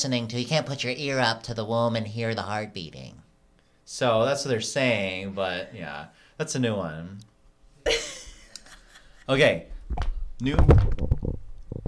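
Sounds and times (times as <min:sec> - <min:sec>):
speech: 0:00.0 - 0:03.2, 0:03.9 - 0:08.1, 0:09.3 - 0:11.1
microphone bumped: 0:09.7 - 0:11.8.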